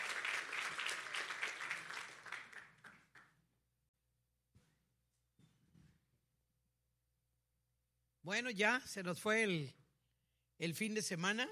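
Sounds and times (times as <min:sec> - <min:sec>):
audience applause: 0:00.0 - 0:03.3
speech: 0:08.2 - 0:09.8, 0:10.6 - 0:11.4.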